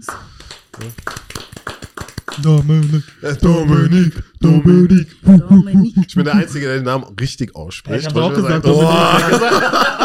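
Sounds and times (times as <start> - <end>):
speech: 0.0 - 1.1, 2.4 - 10.0
applause: 0.0 - 3.2
laughter: 8.5 - 10.0.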